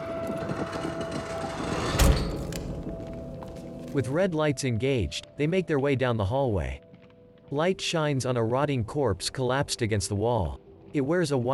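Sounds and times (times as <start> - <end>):
door shutting: 0.4 - 3.9
speech: 3.9 - 6.8, 7.5 - 11.5.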